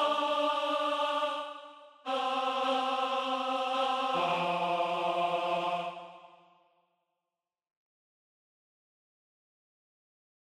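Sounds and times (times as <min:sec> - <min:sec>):
tenor voice singing: 0:00.0 - 0:06.2.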